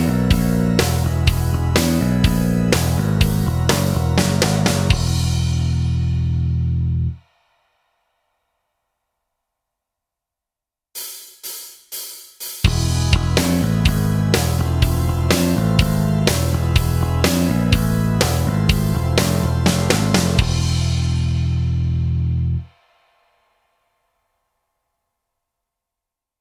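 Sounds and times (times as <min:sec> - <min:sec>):
backing track: 0:00.0 - 0:07.2, 0:12.6 - 0:22.7.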